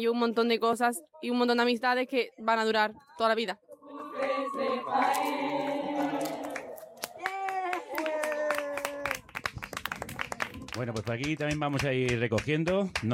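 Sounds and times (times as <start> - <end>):
speech: 0.0 - 6.3, 10.8 - 13.1
voices cheering: 3.8 - 9.2
scattered hand claps: 6.0 - 13.1.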